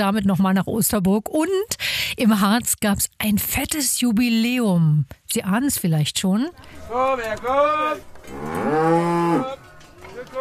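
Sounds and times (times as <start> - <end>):
speech: 0.0 - 9.6
faint noise: 0.0 - 10.3
Harzer Rotes Höhenvieh cattle mooing: 6.9 - 9.8.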